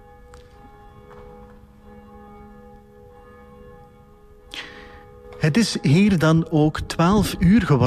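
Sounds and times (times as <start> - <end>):
church tower bell tolling: 0.0 - 7.8
speech: 5.5 - 7.8.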